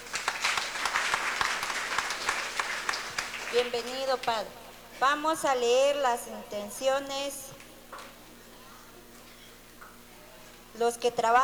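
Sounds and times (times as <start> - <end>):
church congregation applauding: 0.0 - 4.3
speech: 3.5 - 7.6, 10.8 - 11.4.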